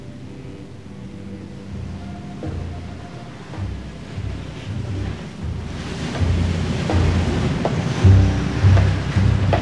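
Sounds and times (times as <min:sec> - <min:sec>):
ocean waves breaking on a beach: 0:03.9 - 0:09.6.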